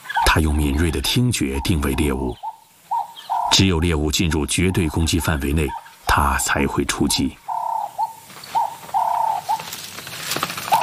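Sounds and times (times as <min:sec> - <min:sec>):
guinea fowl calling: 0:00.0 - 0:09.9, 0:10.6 - 0:10.8
speech: 0:00.4 - 0:02.5, 0:03.5 - 0:07.4
soft rustling: 0:08.1 - 0:10.8.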